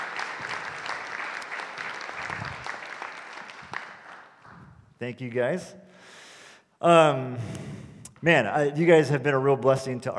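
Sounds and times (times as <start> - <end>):
church congregation applauding: 0.0 - 5.0
speech: 5.0 - 6.2, 6.8 - 10.1.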